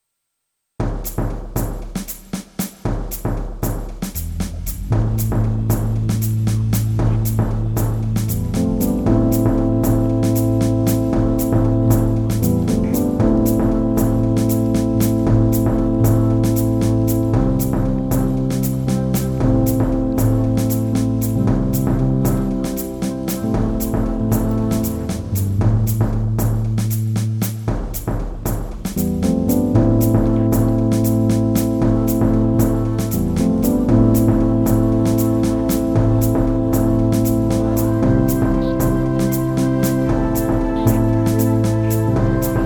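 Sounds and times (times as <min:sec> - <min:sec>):
instrumental music: 0:00.8 - 0:42.6.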